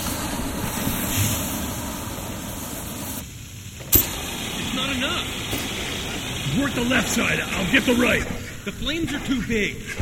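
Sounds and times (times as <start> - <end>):
fire extinguisher spraying: 0.0 - 9.1
speech: 5.0 - 5.4, 6.6 - 10.0.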